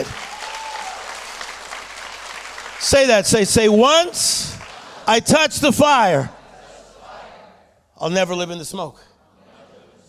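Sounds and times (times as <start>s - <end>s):
speech: 0.0s - 0.2s, 2.8s - 6.4s, 8.0s - 9.1s
audience clapping: 0.0s - 5.1s.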